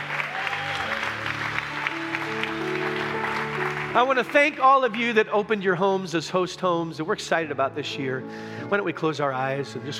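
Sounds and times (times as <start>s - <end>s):
audience applause at a church service for the interns: 0.0s - 5.3s
speech: 4.0s - 9.9s.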